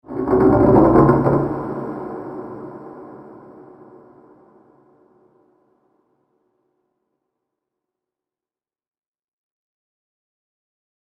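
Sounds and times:
horror sound effect: 0.1 - 5.2.

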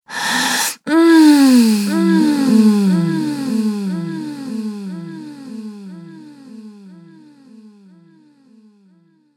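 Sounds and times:
woman groaning during sex with delay effect: 0.1 - 6.2.

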